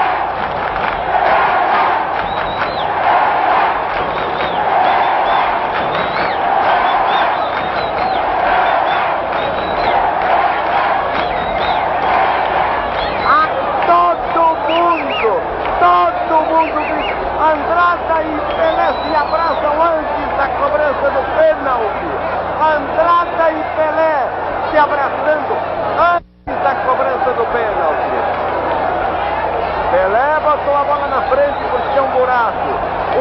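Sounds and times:
football stadium crowd cheering: 0:00.0 - 0:33.1
shrill whistles: 0:01.3 - 0:15.4, 0:16.2 - 0:17.2, 0:18.4 - 0:19.9, 0:30.9 - 0:32.2.

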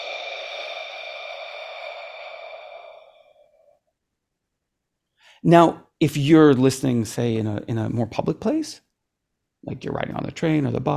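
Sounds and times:
slow exhale through rounded lips: 0:00.0 - 0:03.8
speech: 0:05.4 - 0:08.8, 0:09.6 - 0:10.9.

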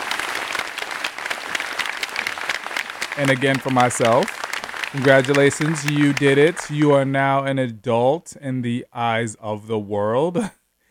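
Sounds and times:
round of applause: 0:00.0 - 0:07.1
speech: 0:03.2 - 0:10.6.

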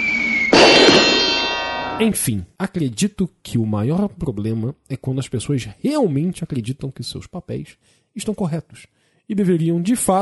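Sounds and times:
cartoon anvil clang sound effect: 0:00.5 - 0:02.0
speech: 0:02.0 - 0:10.1.

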